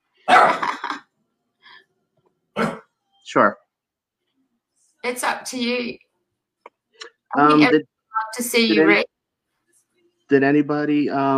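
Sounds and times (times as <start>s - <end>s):
dog barking: 0.2s - 0.7s
speech: 3.3s - 3.6s, 5.1s - 6.0s, 7.0s - 9.1s, 10.3s - 11.3s.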